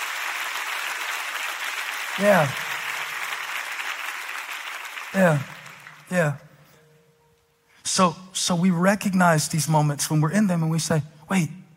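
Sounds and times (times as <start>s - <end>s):
audience clapping: 0.0s - 6.4s
speech: 2.2s - 2.6s, 5.1s - 5.5s, 6.1s - 6.4s, 7.9s - 11.6s.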